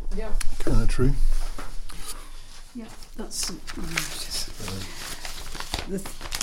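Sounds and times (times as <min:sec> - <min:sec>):
speech: 0:00.2 - 0:01.4, 0:02.8 - 0:05.1, 0:05.9 - 0:06.3
rustling of papers: 0:01.4 - 0:06.4.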